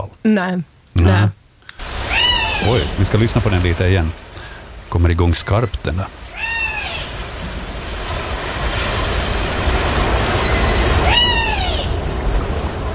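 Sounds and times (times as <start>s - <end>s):
speech: 0.2s - 1.4s, 2.6s - 4.2s, 4.9s - 6.2s
steady rumbling noise: 0.7s - 12.9s
wader calling, possibly common redshank: 2.0s - 3.7s, 6.2s - 7.3s, 10.8s - 12.1s.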